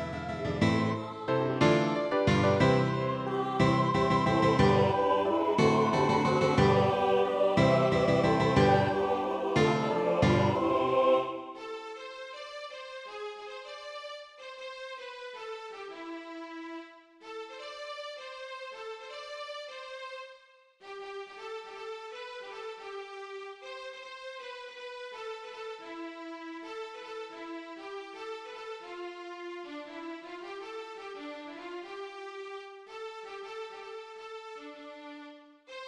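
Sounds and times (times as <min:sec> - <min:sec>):
music medley: 0:00.0 - 0:12.3.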